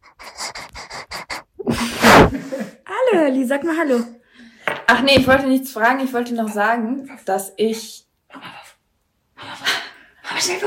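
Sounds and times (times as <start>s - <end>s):
dog panting: 0.0s - 1.9s
speech: 3.1s - 4.2s, 4.9s - 8.5s, 10.4s - 10.6s.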